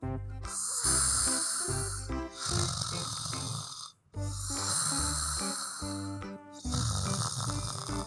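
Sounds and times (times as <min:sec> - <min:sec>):
loud rhythmic snoring of a sleeping joey: 0:00.0 - 0:08.0.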